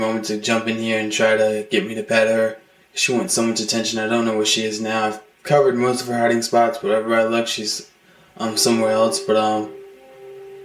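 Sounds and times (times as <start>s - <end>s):
speech: 0.1s - 9.8s
phone notification tone: 8.6s - 10.6s.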